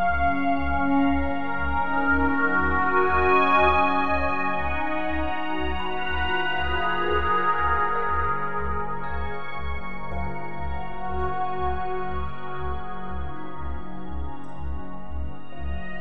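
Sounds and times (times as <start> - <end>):
meditation music for sleep: 0.0 - 15.9.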